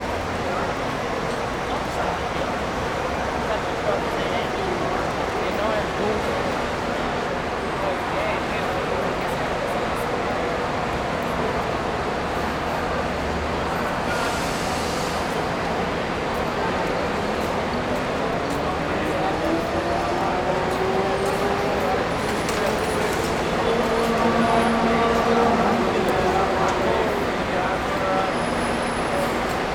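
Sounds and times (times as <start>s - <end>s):
people at the Plano Piloto bus station: 0.0s - 29.7s
several buses at the Plano Piloto bus station: 0.0s - 29.7s.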